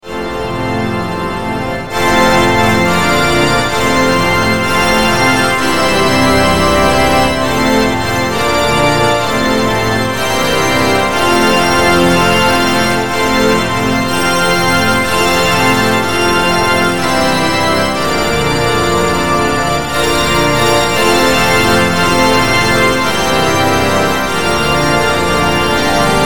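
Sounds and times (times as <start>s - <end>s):
largest pipe organ in the world with 2,000 ranks playing: 0.0s - 26.2s.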